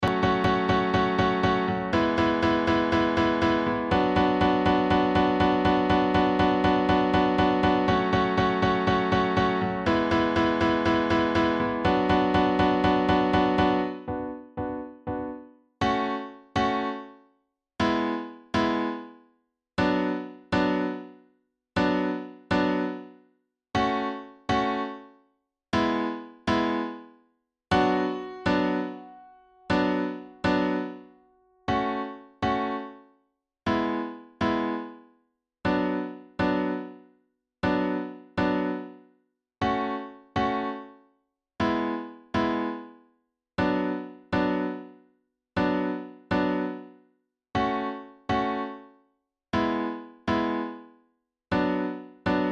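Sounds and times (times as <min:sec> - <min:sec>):
piano: 0:00.0 - 0:17.2, 0:17.8 - 0:19.2, 0:19.8 - 0:21.2, 0:21.8 - 0:23.2, 0:23.8 - 0:25.1, 0:25.8 - 0:27.1, 0:27.7 - 0:33.0, 0:33.7 - 0:35.0, 0:35.7 - 0:37.0, 0:37.6 - 0:39.0, 0:39.6 - 0:41.0, 0:41.6 - 0:43.0, 0:43.6 - 0:45.0, 0:45.6 - 0:47.0, 0:47.6 - 0:48.9, 0:49.6 - 0:50.8, 0:51.5 - 0:52.4.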